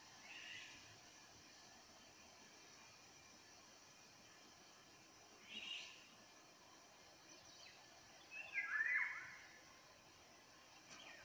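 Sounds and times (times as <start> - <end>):
Eurasian jay song: 0.2 - 0.9, 5.4 - 6.1, 7.2 - 9.6, 10.8 - 11.2.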